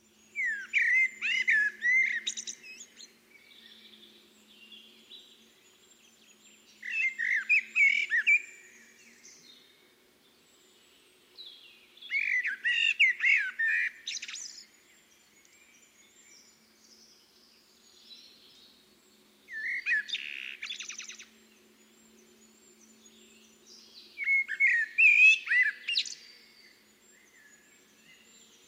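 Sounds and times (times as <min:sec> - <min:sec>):
Eurasian blackbird calling with sharp high chinking notes: 0:00.4 - 0:02.9, 0:06.8 - 0:08.7, 0:12.1 - 0:14.6, 0:24.2 - 0:26.4.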